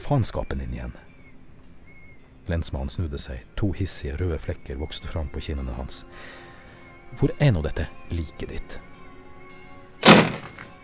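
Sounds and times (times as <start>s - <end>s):
speech: 0.1s - 1.1s, 2.5s - 6.5s, 7.1s - 8.9s
door of a small shed slamming shut: 10.0s - 10.7s.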